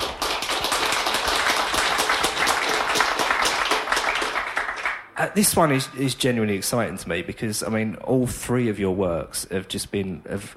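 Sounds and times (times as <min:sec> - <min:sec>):
audience clapping to welcome a guest at a drug-policy event: 0:00.0 - 0:05.2
speech: 0:05.3 - 0:10.5.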